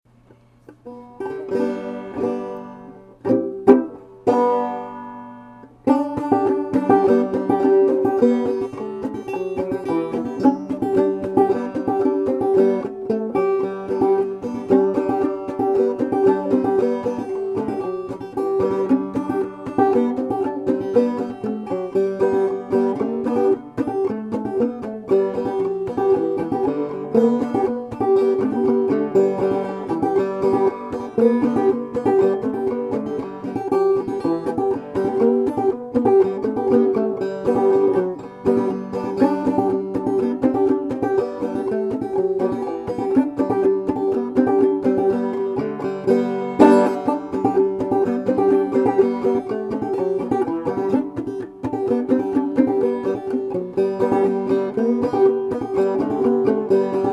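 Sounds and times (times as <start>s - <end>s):
banjo: 0.0s - 57.1s.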